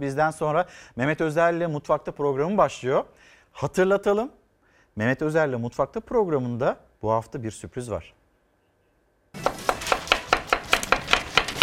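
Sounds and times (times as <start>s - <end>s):
speech: 0.0s - 4.4s, 5.0s - 8.2s
knife chopping onions on a board in a kitchen: 9.4s - 11.6s.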